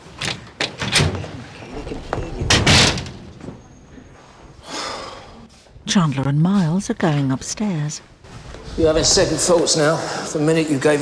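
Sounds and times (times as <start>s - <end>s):
door opening: 0.0s - 4.1s
speech: 5.9s - 8.1s, 8.8s - 11.0s.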